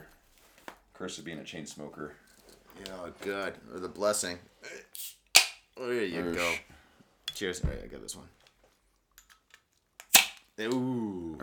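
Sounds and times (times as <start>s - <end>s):
speech: 1.0s - 5.2s, 5.8s - 6.8s, 7.4s - 8.4s, 10.6s - 11.4s
beer bottle being opened: 5.0s - 5.7s, 10.0s - 10.5s.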